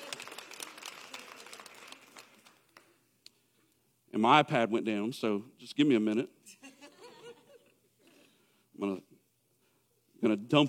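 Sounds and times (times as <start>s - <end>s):
small audience applauding for a singer: 0.0s - 3.0s
speech: 4.2s - 6.4s, 10.3s - 10.6s.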